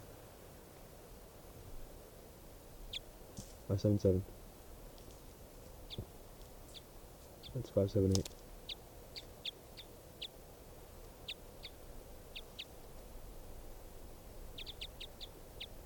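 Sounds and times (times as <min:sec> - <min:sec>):
speech: 0:03.7 - 0:04.4, 0:07.6 - 0:08.4
bird calls: 0:05.8 - 0:10.4, 0:11.2 - 0:13.0, 0:14.5 - 0:15.8.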